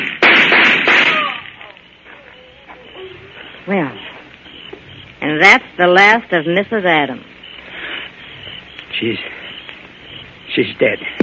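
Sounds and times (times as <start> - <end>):
gunshot in an old radio crime drama: 0.0 - 1.6
speech: 3.7 - 4.0, 5.3 - 7.3, 9.0 - 9.4, 10.6 - 11.2.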